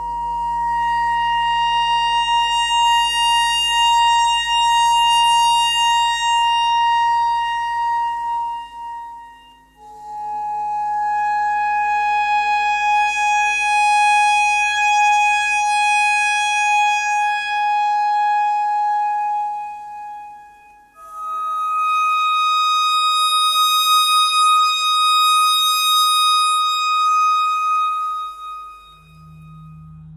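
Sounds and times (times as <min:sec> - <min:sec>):
simple clarinet notes: 0:00.0 - 0:30.1.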